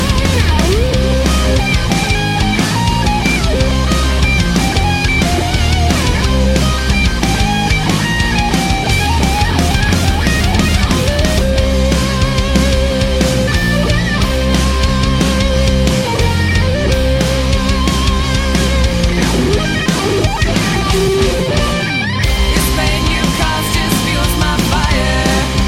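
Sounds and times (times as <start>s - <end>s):
guitar solo: 0.0s - 25.6s.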